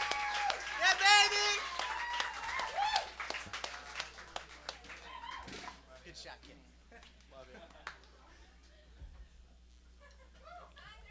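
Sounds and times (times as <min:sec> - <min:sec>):
whistle-like whoop: 0:00.0 - 0:03.1
audience applause: 0:00.0 - 0:05.8
cheering voices: 0:00.0 - 0:05.8.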